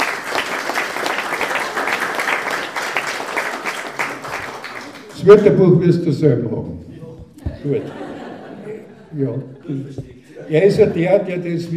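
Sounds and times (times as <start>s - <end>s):
applause: 0.0s - 5.3s
speech: 5.2s - 6.9s, 7.6s - 8.1s, 9.1s - 11.7s
laughter: 7.4s - 11.7s.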